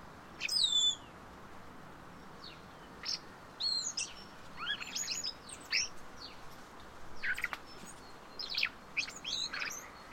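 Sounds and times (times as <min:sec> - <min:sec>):
common blackbird whistled song: 0:00.4 - 0:01.1, 0:02.4 - 0:06.4, 0:07.2 - 0:10.1.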